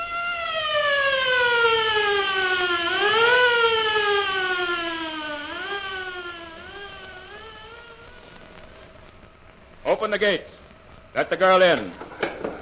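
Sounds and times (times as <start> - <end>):
alarm siren wailing: 0.0 - 9.0
speech: 10.0 - 10.6, 11.2 - 12.0.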